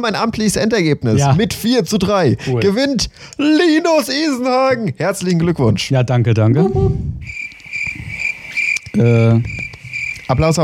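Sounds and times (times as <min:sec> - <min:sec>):
speech: 0:00.0 - 0:07.4, 0:09.0 - 0:09.6, 0:10.3 - 0:10.6
crickets chirping: 0:07.2 - 0:10.6.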